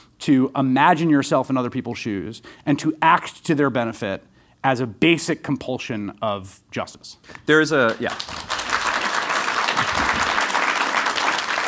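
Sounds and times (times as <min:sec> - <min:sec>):
speech: 0:00.2 - 0:08.6
audience applause: 0:07.9 - 0:11.6.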